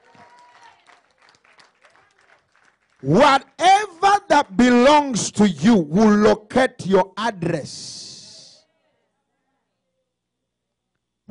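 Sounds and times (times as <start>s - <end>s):
crowd clapping hands: 0.0s - 4.6s
speech: 3.0s - 8.0s.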